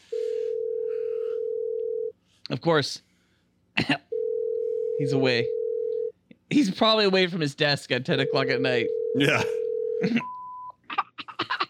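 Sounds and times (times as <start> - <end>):
telephone ringing tone: 0.1 - 2.1, 4.1 - 6.1, 8.2 - 10.5
speech: 2.5 - 3.1, 3.8 - 4.1, 5.0 - 5.6, 6.5 - 10.3.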